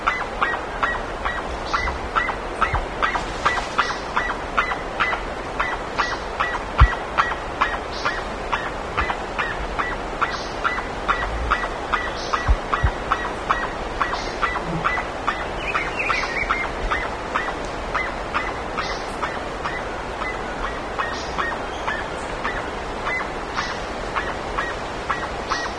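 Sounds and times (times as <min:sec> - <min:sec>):
bird giving brief nasal calls: 0:00.0 - 0:25.7
steady hiss: 0:00.0 - 0:25.7
low thumps: 0:12.4 - 0:13.1.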